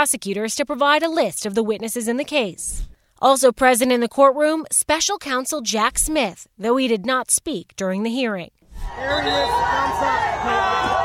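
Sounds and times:
speech: 0.0s - 11.0s
crowd cheering and shouting outside a courthouse: 8.8s - 11.0s.

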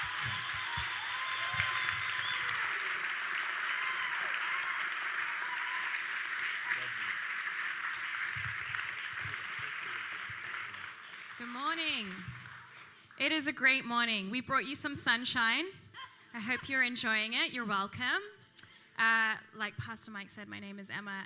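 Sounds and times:
faint murmurs and cheers: 0.0s - 13.1s
church audience applause: 0.0s - 13.2s
speech: 13.2s - 15.8s, 16.4s - 18.4s, 19.0s - 21.2s.

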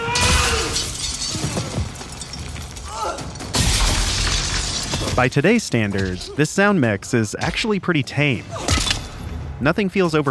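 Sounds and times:
glass shattering as people are thrown through windows: 0.1s - 6.4s
speech: 5.2s - 8.8s, 9.6s - 10.3s.

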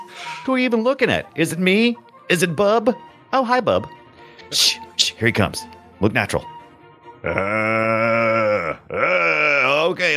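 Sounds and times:
speech: 0.4s - 6.6s, 7.2s - 10.1s
zombie-like growl: 7.3s - 9.8s.

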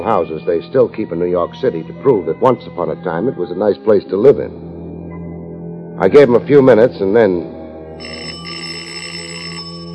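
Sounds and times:
speech: 0.0s - 4.7s, 6.0s - 8.3s
doorbell ringing: 8.0s - 9.9s.

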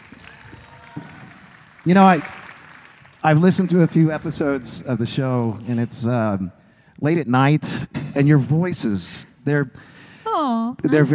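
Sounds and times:
audience applauding: 0.0s - 5.9s
speech: 1.8s - 2.4s, 3.2s - 10.0s, 10.7s - 11.1s.

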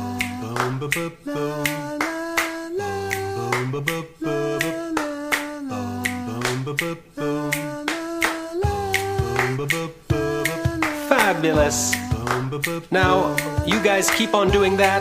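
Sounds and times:
finger snapping: 0.2s - 4.0s, 4.6s - 14.3s
speech: 0.6s - 2.0s, 3.7s - 5.0s, 6.7s - 7.8s, 9.6s - 10.4s, 11.3s - 14.9s.

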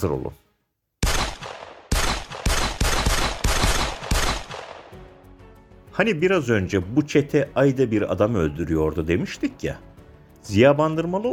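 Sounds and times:
speech: 0.0s - 0.4s, 6.0s - 11.3s
gunfire sound effect for a gangland shooting in Ankara: 1.0s - 5.0s.

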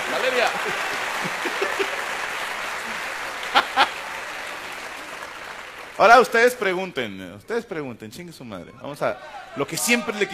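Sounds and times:
laughter: 0.0s - 4.2s
audience applause: 0.0s - 6.8s
speech: 0.4s - 1.6s, 6.0s - 10.3s.

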